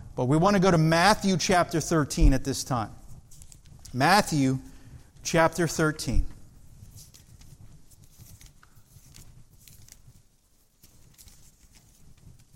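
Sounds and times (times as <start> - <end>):
speech: 0.2 - 3.0, 3.9 - 6.3
Bible pages turning: 3.3 - 4.0, 6.7 - 12.5.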